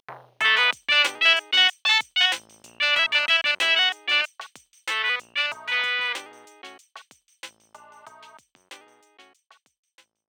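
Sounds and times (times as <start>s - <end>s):
groove music aircheck: 0.4s - 4.3s, 4.9s - 6.8s.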